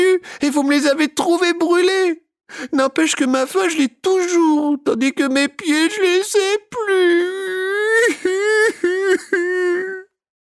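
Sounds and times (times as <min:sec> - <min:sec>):
speech: 0:00.3 - 0:07.4
voice of a puppet imitating loud crying and wailing: 0:06.7 - 0:10.2.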